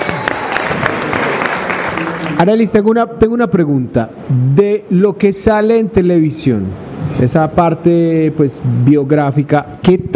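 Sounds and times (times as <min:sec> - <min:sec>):
audience applause: 0:00.0 - 0:02.5
speech: 0:02.4 - 0:10.1.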